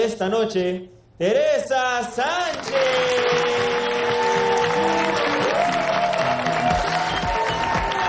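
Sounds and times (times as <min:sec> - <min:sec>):
speech: 0:00.0 - 0:03.7
crowd applauding a quinceañera walking out: 0:02.5 - 0:08.0.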